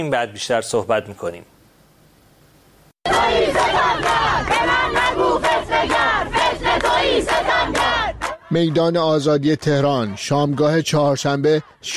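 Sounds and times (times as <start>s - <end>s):
speech: 0.0s - 1.6s, 8.5s - 11.9s
protest crowd chanting slogans at Azadi Square in Tehran: 3.1s - 11.9s.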